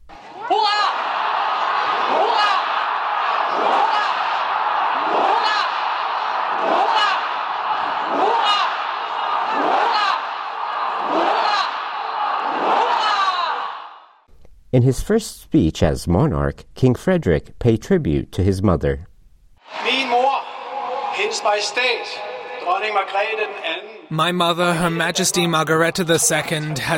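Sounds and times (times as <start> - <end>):
large crowd shouting hurrahs in unison as a ninefold salute: 0.2 - 14.2, 19.6 - 23.2
speech: 14.8 - 19.1, 21.3 - 26.9.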